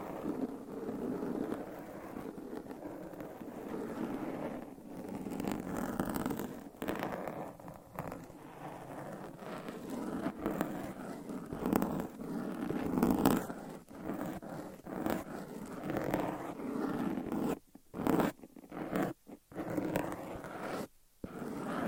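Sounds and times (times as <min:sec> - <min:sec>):
nails scratching over mic covers: 0:00.0 - 0:21.8.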